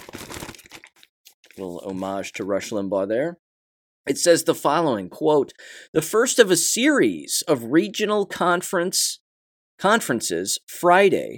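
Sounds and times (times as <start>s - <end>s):
newspaper pages rustling and crinkling: 0.0s - 2.6s
speech: 1.6s - 3.4s, 4.0s - 9.2s, 9.8s - 11.3s.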